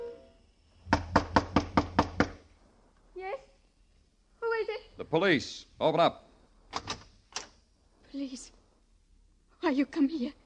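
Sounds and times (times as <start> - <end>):
knocking on a door: 0.9 - 2.4
speech: 5.1 - 6.2, 8.2 - 8.6, 9.7 - 10.4.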